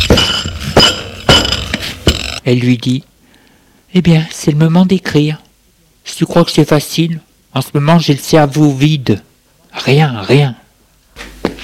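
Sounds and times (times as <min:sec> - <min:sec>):
plate being put away in a drawer: 0:00.0 - 0:02.4
speech: 0:02.4 - 0:03.1, 0:03.9 - 0:05.4, 0:06.1 - 0:10.6.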